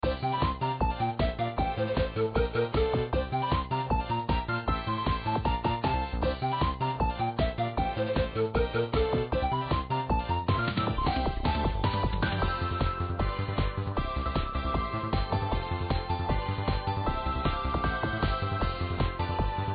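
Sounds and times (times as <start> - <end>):
background music: 0.0 - 19.7.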